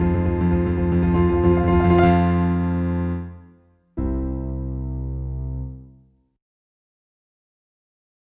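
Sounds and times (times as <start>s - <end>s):
piano: 0.0s - 6.4s.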